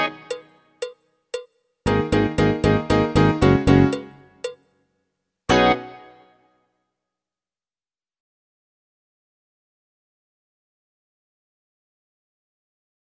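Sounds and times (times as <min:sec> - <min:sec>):
medium rock music: 0:01.9 - 0:04.1.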